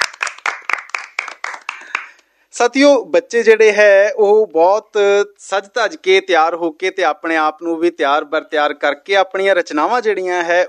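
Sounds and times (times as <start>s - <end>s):
loud rhythmic audience clapping in a studio: 0.0s - 2.2s
speech: 2.6s - 10.6s.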